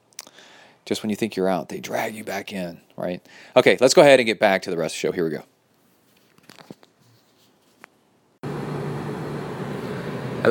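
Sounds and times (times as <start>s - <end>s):
speech: 0.9s - 5.6s
air conditioner blowing: 8.4s - 10.4s.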